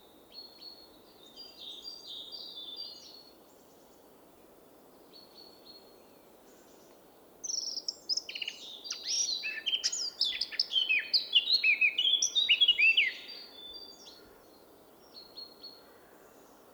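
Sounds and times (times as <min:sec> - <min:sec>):
Eurasian blackcap Sylvia atricapilla warbling song with fluty whistles: 0:07.5 - 0:13.3.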